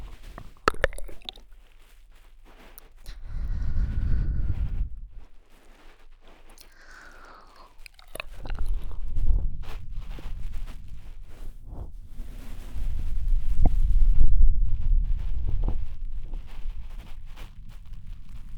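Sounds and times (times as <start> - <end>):
ASMR ear licking sounds: 0.0 - 1.8, 2.6 - 10.4, 13.4 - 14.1
bead cushion rustling ASMR: 0.0 - 18.5.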